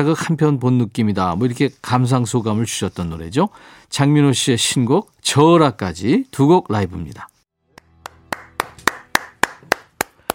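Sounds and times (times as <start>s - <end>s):
speech: 0.0s - 7.3s
one person clapping hands in studio: 7.7s - 10.3s.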